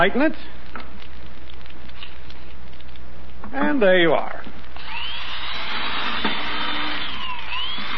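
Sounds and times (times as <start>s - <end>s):
speech: 0.0s - 0.6s, 3.5s - 4.6s
power drill drilling through a board: 4.8s - 7.9s.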